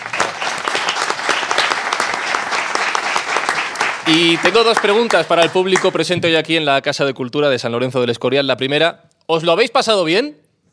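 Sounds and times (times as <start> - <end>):
audience applause: 0.0 - 6.0
speech: 4.1 - 10.4.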